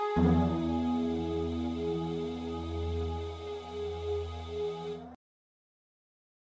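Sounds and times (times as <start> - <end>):
shakuhachi: 0.3 - 5.2.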